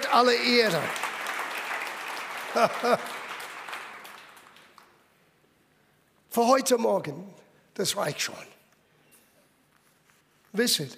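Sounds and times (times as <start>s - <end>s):
audience applause: 0.0s - 5.0s
speech: 0.1s - 1.0s, 2.5s - 3.2s, 6.3s - 8.5s, 10.5s - 10.9s
laughter: 2.5s - 3.2s.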